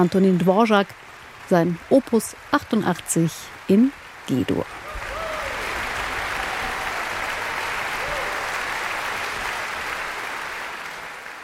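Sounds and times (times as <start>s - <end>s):
speech: 0.0s - 4.8s
concert audience applause in a hall: 4.6s - 11.4s.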